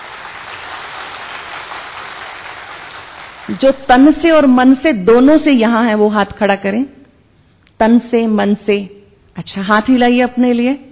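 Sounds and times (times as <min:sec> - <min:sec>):
audience clapping hands: 0:00.0 - 0:03.6
speech: 0:03.5 - 0:07.0, 0:07.8 - 0:10.8.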